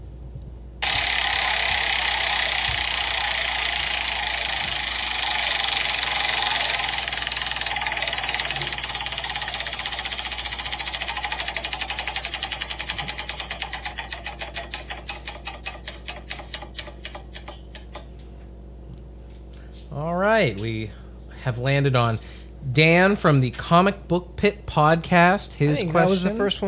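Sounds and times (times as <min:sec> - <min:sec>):
prize wheel spinning with rapid clicking: 0:00.8 - 0:18.1
speech: 0:21.4 - 0:26.6.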